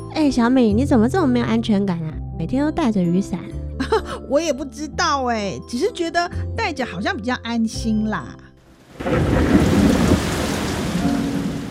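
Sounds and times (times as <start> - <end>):
speech: 0.2 - 8.4, 9.0 - 9.7
sudden heavy rain: 8.6 - 11.7
low thunder rumble: 8.8 - 11.7.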